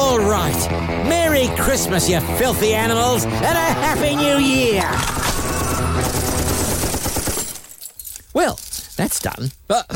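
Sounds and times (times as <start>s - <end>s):
speech: 0.4s - 6.2s, 8.4s - 9.9s
rifle gunfire sound effect volley: 6.0s - 7.6s.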